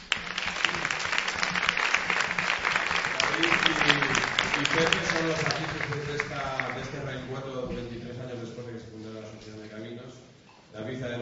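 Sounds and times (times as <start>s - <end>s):
crowd applause: 0.0s - 7.2s
speech: 4.6s - 7.4s.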